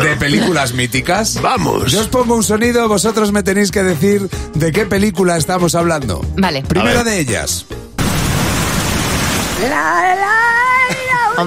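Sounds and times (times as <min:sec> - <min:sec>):
speech: 0:00.2 - 0:07.8, 0:09.6 - 0:10.5
rain falling: 0:08.0 - 0:10.2.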